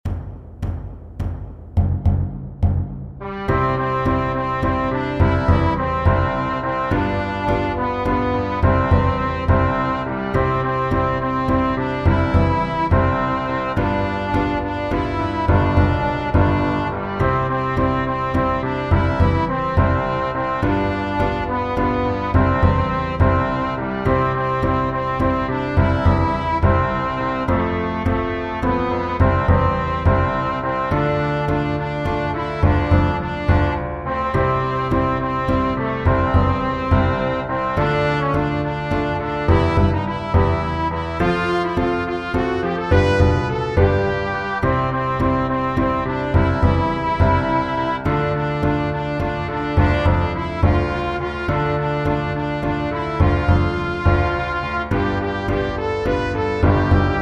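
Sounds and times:
piano: 0.0 - 57.2.

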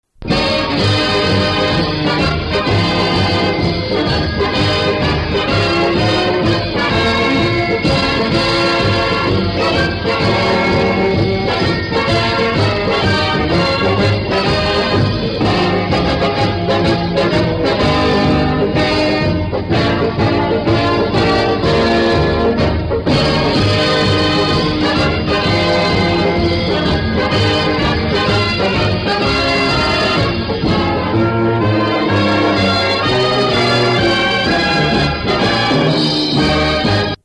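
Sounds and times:
band playing a fight song: 0.2 - 37.2.

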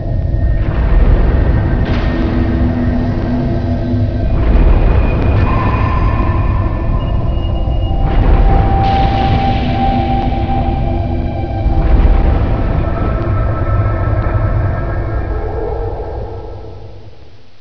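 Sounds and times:
thunder: 0.2 - 17.2.

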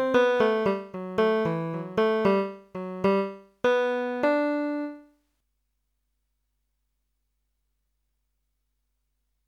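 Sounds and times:
bass: 0.0 - 4.9.

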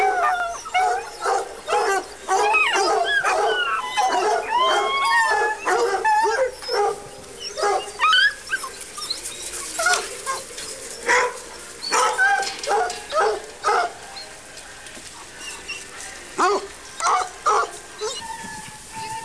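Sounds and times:
hounds: 0.0 - 19.2.

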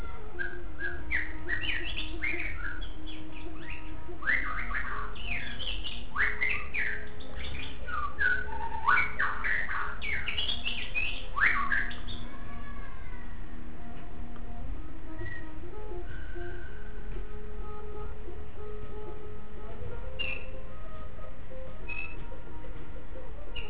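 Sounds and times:
white-rumped shama singing whistles and chirps: 0.0 - 23.6.

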